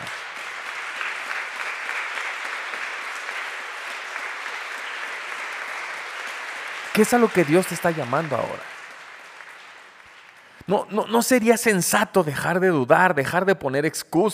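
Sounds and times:
audience applause: 0:00.0 - 0:11.0
speech: 0:07.0 - 0:08.7, 0:10.7 - 0:14.3.

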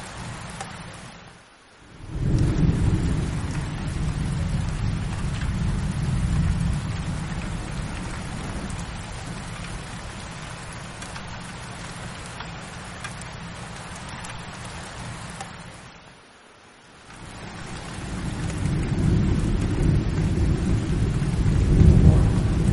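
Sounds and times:
heavy rain in a thunderstorm: 0:00.0 - 0:22.7
deep rumbles of thunder: 0:01.8 - 0:12.7, 0:17.2 - 0:22.7.

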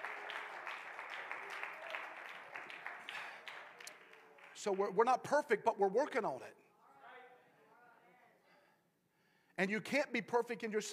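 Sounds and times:
audience clapping hands: 0:00.0 - 0:05.1
speech: 0:04.6 - 0:06.6, 0:09.6 - 0:10.9.

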